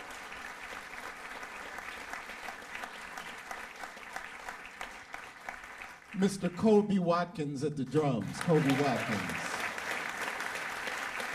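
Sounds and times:
audience applause: 0:00.0 - 0:06.7, 0:07.9 - 0:11.3
speech: 0:06.2 - 0:09.6.

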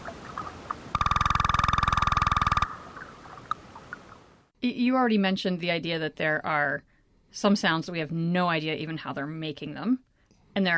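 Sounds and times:
striped cusk-eel male advertisement call: 0:00.9 - 0:03.6
speech: 0:04.6 - 0:10.7.

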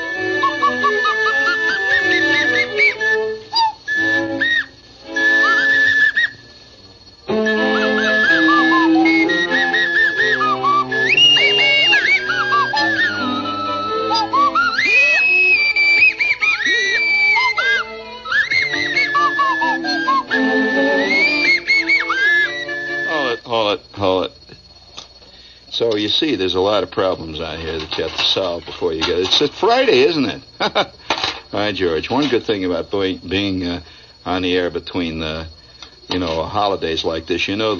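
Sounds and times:
nose flute melody: 0:00.0 - 0:06.6, 0:07.3 - 0:23.4
busy musical backing: 0:00.0 - 0:23.4
speech: 0:26.2 - 0:31.0, 0:31.6 - 0:37.7.

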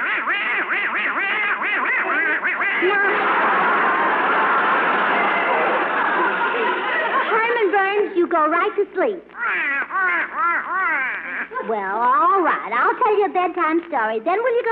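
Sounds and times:
duck quacking: 0:00.0 - 0:03.1, 0:09.4 - 0:11.6
laughter: 0:01.8 - 0:08.3
speech: 0:08.3 - 0:14.6.

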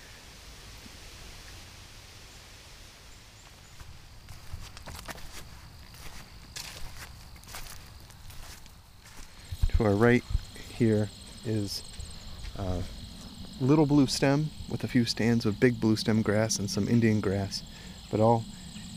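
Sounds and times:
crunching footsteps: 0:03.4 - 0:14.8
wind in high tree canopy: 0:09.4 - 0:13.7
speech: 0:09.8 - 0:10.2, 0:10.8 - 0:11.9, 0:12.6 - 0:13.0, 0:13.6 - 0:18.9.

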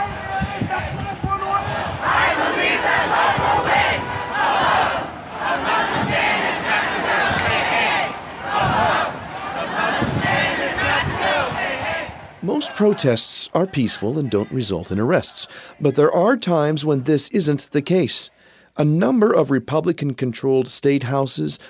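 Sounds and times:
protesters chanting at a march near the Capitol: 0:00.0 - 0:16.4
speech: 0:12.8 - 0:21.6.

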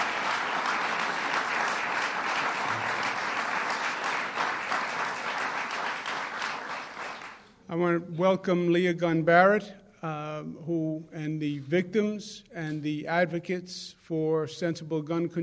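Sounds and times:
crowd clapping: 0:00.0 - 0:07.5
speech: 0:07.7 - 0:15.4.

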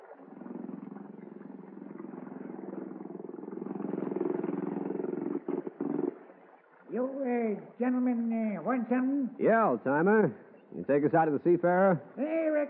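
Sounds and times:
motorboat tender engine droning: 0:00.0 - 0:07.2
speech: 0:07.0 - 0:12.6.

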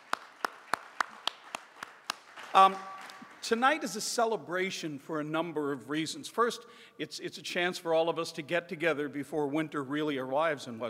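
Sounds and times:
round of applause: 0:00.0 - 0:03.6
speech: 0:02.5 - 0:10.8.

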